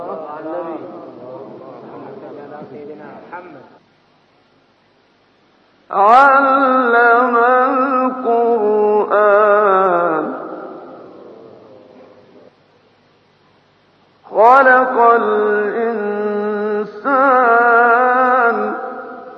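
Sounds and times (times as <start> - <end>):
recitation of a holy surah: 0.0 - 3.5, 5.9 - 12.6, 14.2 - 19.3.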